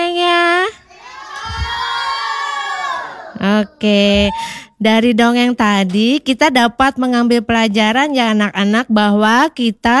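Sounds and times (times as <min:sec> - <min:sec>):
children cheering for a storyteller: 0:00.9 - 0:03.4
children clapping for a storyteller: 0:01.2 - 0:02.8
speech: 0:03.5 - 0:09.9.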